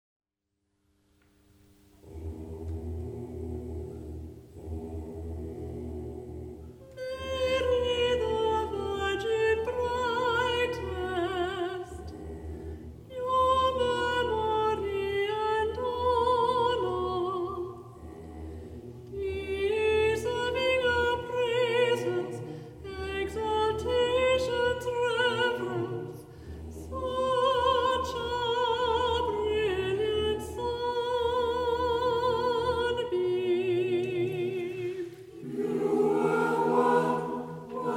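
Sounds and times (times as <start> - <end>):
choir singing a hymn to Mary: 2.0 - 37.9.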